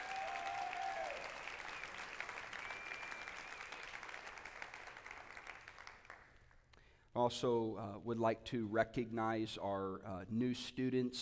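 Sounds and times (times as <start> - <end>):
audience applause: 0.0 - 6.3
speech: 7.2 - 11.2.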